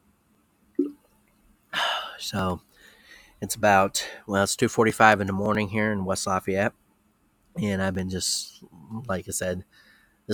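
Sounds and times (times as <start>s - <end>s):
sipping a drink: 0.8s - 1.0s
speech: 2.2s - 2.7s, 3.4s - 6.8s, 7.6s - 10.3s.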